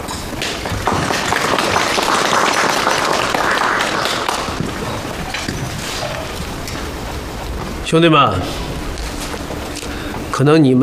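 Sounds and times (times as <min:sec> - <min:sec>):
audience applause: 0:00.4 - 0:06.6
speech: 0:07.9 - 0:08.6, 0:10.4 - 0:10.8.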